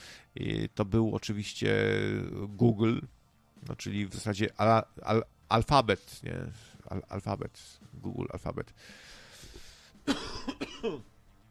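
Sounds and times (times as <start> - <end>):
speech: 0.4 - 9.2, 10.1 - 11.1
coughing: 10.0 - 11.1.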